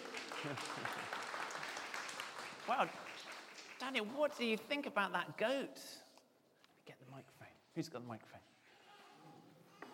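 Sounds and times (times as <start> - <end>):
faint group applause during a Bible story: 0.0 - 4.2
speech: 0.4 - 1.2, 2.7 - 3.1, 3.8 - 6.0, 7.2 - 8.5.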